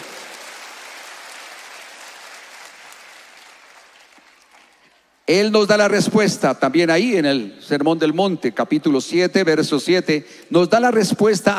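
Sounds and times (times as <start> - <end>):
audience applause: 0.0 - 5.0
speech: 5.3 - 11.5.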